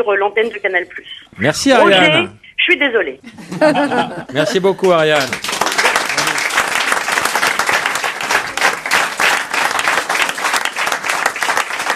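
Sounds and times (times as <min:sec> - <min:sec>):
speech: 0:00.0 - 0:05.4
laughter: 0:03.2 - 0:04.8
audience applause: 0:04.8 - 0:11.9.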